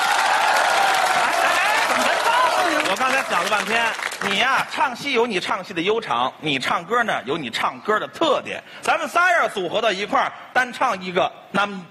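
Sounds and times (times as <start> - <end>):
audience applause: 0.0 - 4.4
speech: 2.9 - 11.8.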